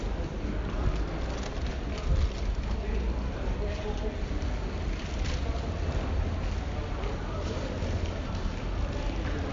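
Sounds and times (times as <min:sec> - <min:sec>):
train platform noise: 0:00.0 - 0:09.5.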